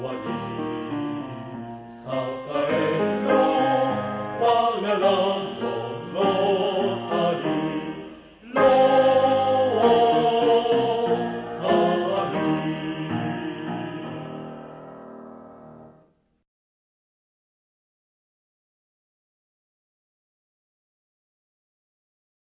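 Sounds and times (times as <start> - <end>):
piano: 0.0 - 16.4.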